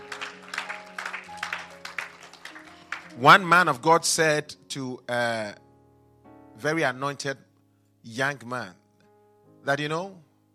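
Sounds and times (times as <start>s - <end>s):
audience clapping in a steady rhythmic beat: 0.0s - 3.6s
speech: 3.2s - 5.6s, 6.6s - 8.8s, 9.6s - 10.3s.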